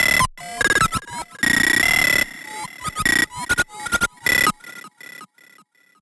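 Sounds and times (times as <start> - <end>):
computer: 0.4 - 5.6.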